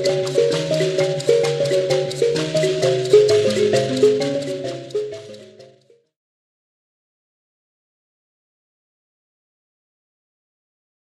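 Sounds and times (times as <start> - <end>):
Zimbabwe mbira dza vadzimu playing: 0.0 - 6.0.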